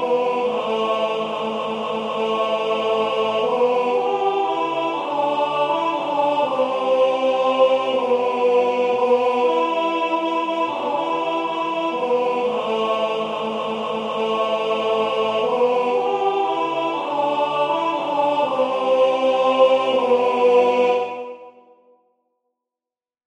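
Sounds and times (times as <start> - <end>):
alto singing sacred music: 0.0 - 21.8.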